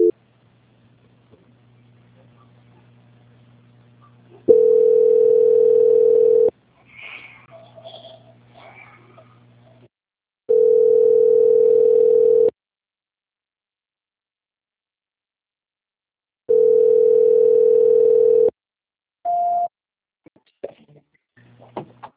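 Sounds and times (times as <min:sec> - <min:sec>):
telephone line tones during a call transfer: 0:04.5 - 0:06.5, 0:10.5 - 0:12.5, 0:16.5 - 0:18.5.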